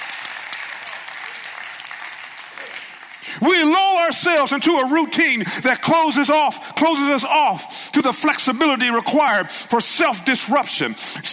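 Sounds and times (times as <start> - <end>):
small group clapping: 0.0 - 3.4
speech: 3.4 - 11.3.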